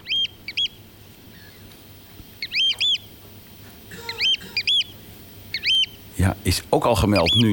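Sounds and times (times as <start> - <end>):
oystercatcher call: 0.0 - 1.7, 2.4 - 3.1, 3.9 - 6.1, 6.9 - 7.5
speech: 6.2 - 7.5.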